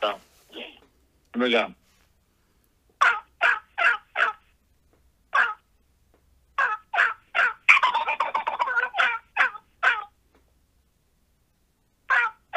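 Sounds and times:
speech: 0:01.4 - 0:01.8
person vocally imitating a wild turkey gobble: 0:03.0 - 0:04.5, 0:05.3 - 0:05.7, 0:06.6 - 0:10.2, 0:12.1 - 0:12.5.

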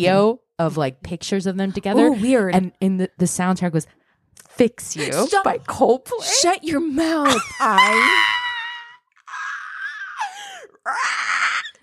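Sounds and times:
speech: 0:00.0 - 0:04.0, 0:04.6 - 0:08.4
voice imitating a baby pterodactyl's screech: 0:07.3 - 0:10.2.

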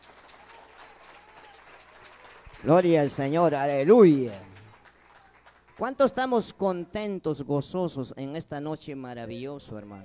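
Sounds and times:
church congregation clapping during an evening worship service: 0:00.0 - 0:07.0
speech: 0:02.6 - 0:04.5, 0:05.8 - 0:10.0.

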